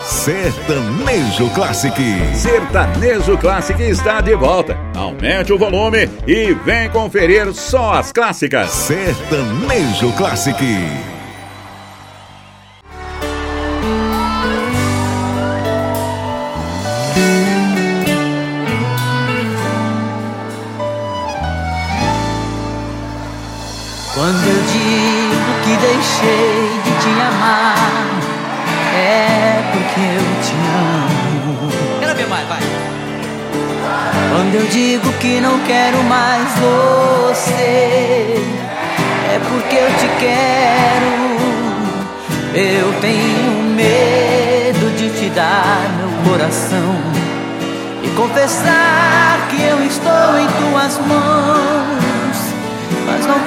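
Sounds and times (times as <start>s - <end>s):
classic Sertanejo music: 0.0s - 53.4s.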